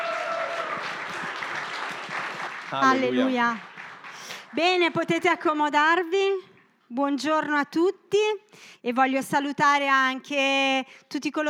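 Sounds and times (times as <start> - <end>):
church congregation applause welcoming a pastor to preach: 0.0 - 5.2
speech: 2.7 - 3.7, 4.5 - 11.4.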